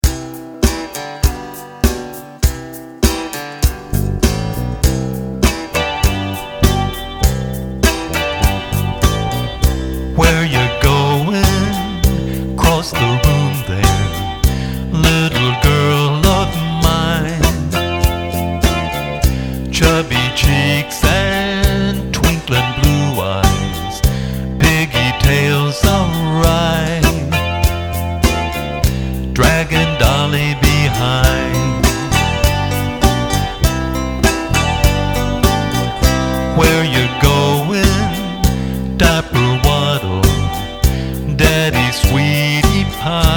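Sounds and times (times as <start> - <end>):
separated guitars: 0.0 - 43.3.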